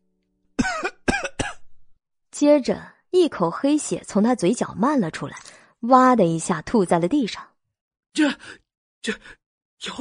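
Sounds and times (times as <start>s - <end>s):
heavy coughing: 0.6s - 1.6s
speech: 2.4s - 7.5s, 8.1s - 9.9s.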